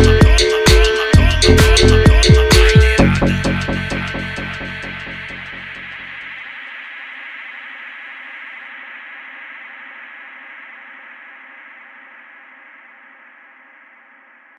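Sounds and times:
mega funk music: 0:00.0 - 0:06.1.

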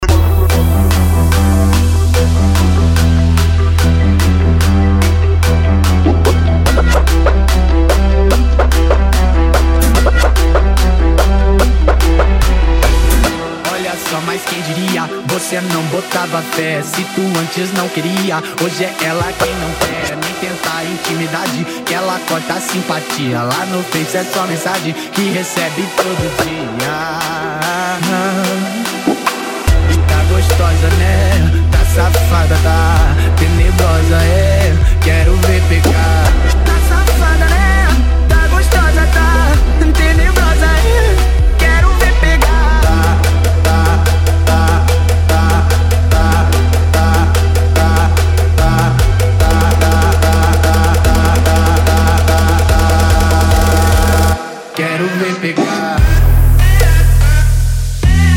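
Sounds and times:
trap funk music: 0:00.0 - 0:58.3.

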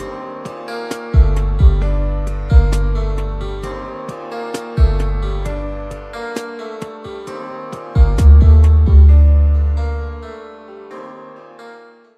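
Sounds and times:
rap music: 0:00.0 - 0:06.9, 0:08.0 - 0:10.2.

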